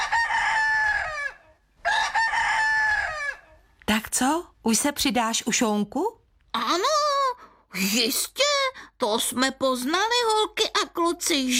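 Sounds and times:
rooster crowing: 0.0 - 3.6
speech: 4.2 - 6.9, 7.8 - 11.5.

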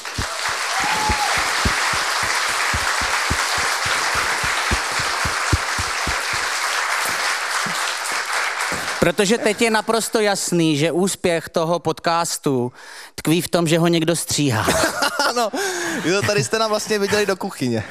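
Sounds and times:
crowd applause: 0.0 - 9.0
speech: 9.0 - 17.8.

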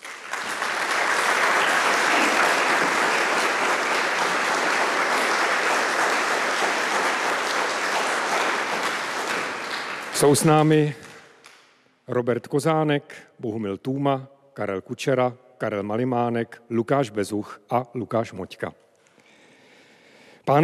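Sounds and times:
audience applause welcoming band: 0.0 - 11.3
speech: 10.2 - 11.0, 12.1 - 18.8, 20.5 - 20.6.

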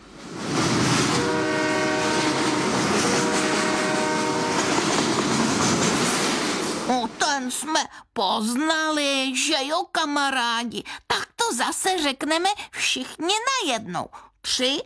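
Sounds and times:
train: 0.0 - 7.4
speech: 7.5 - 14.8.

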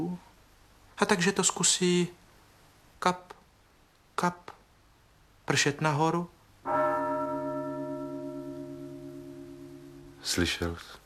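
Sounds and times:
speech: 1.0 - 2.2, 3.0 - 3.4, 4.2 - 4.5, 5.5 - 6.8, 10.2 - 11.0
clock bell striking the hour: 6.7 - 10.5.

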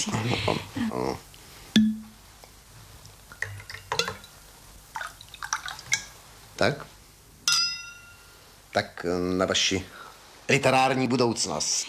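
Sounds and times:
speech: 0.0 - 2.0, 6.6 - 6.9, 8.8 - 11.8
glass clink: 1.8 - 2.1, 7.5 - 8.5
whisky being poured into a glass: 3.3 - 6.1.

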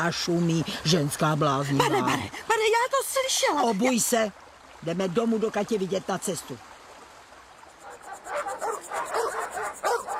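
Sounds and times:
speech: 0.0 - 6.7
dogs barking at a visitor: 7.8 - 10.1.

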